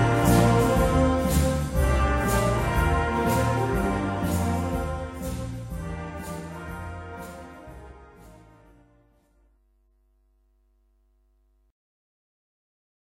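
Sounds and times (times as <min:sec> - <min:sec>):
jazz band playing: 0:00.0 - 0:08.9.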